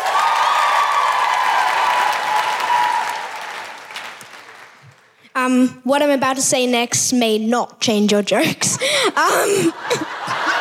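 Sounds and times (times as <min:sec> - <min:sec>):
cheers: 0:00.0 - 0:04.5
audience clapping: 0:00.0 - 0:05.2
speech: 0:05.5 - 0:10.1
laughter: 0:09.2 - 0:10.5.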